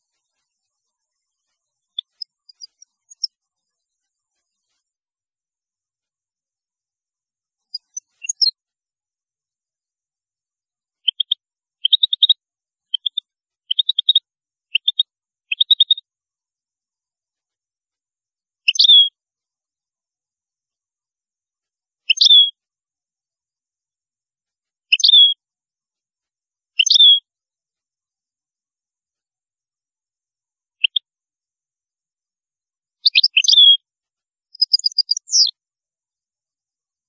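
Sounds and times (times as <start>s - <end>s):
European goldfinch calls: 0.0s - 3.4s, 7.6s - 8.5s, 11.1s - 16.0s, 18.7s - 19.1s, 22.1s - 22.5s, 24.9s - 25.4s, 26.8s - 27.2s, 33.0s - 33.8s, 34.6s - 35.5s.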